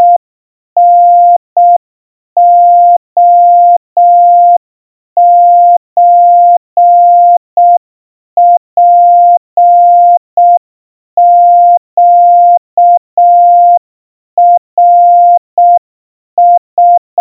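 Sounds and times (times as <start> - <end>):
Morse code tones at 700 Hz: 0.0 - 0.2, 0.8 - 1.8, 2.4 - 4.6, 5.2 - 7.8, 8.4 - 10.6, 11.2 - 13.8, 14.4 - 15.8, 16.4 - 17.1.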